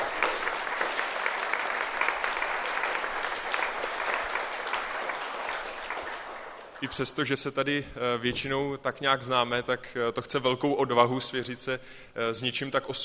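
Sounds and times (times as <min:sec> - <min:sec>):
audience applauding in a church after a personal faith testimony: 0:00.0 - 0:07.2
speech: 0:06.8 - 0:13.0.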